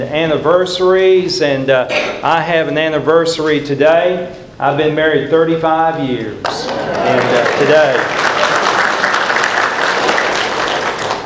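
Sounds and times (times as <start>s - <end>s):
speech: 0.0s - 8.2s
audience applause: 6.4s - 11.2s.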